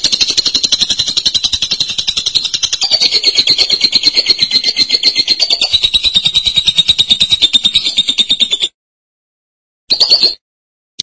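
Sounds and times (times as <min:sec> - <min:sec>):
lovebird shrill buzzy chatter: 0:00.0 - 0:08.8.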